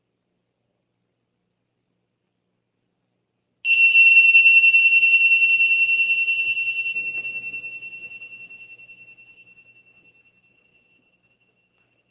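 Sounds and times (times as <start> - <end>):
meditation bell ringing: 3.7 - 12.0.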